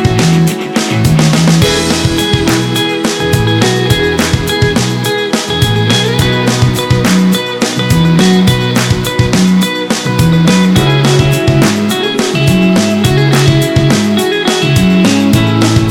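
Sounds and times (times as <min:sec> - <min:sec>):
romantic indie rock music: 0:00.0 - 0:15.8.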